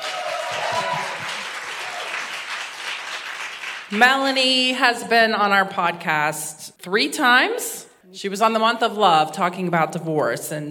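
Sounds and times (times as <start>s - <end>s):
audience clapping to welcome a podcast guest: 0.0s - 4.0s
speech: 3.9s - 10.6s.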